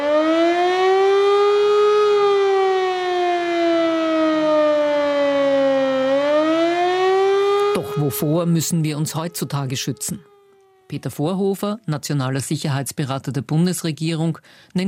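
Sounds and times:
civil defense siren wailing: 0.0 - 11.6
speech: 8.1 - 10.3, 10.9 - 14.8.

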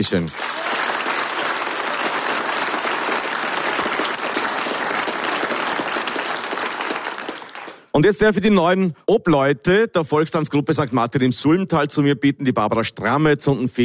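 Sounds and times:
speech: 0.0 - 0.5, 8.0 - 13.8
audience applause: 0.0 - 7.9.

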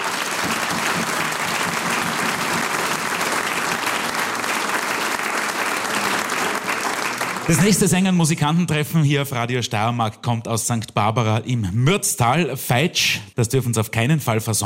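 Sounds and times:
audience applause: 0.0 - 8.0
speech: 7.5 - 14.6.

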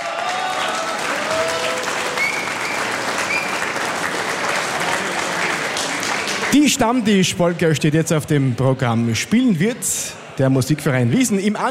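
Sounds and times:
faint whistles or cheers: 0.0 - 3.8
audience applause: 0.0 - 6.9
speech: 6.6 - 11.7.

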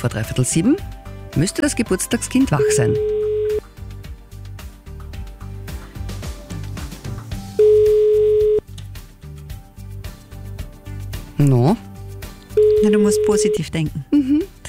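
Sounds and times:
speech: 0.0 - 3.6, 11.4 - 11.9, 12.8 - 14.6
rhythmic music bed: 0.6 - 7.5, 9.0 - 14.6
telephone ringback tone on an outgoing call: 2.6 - 3.6, 7.6 - 8.6, 12.6 - 13.7.

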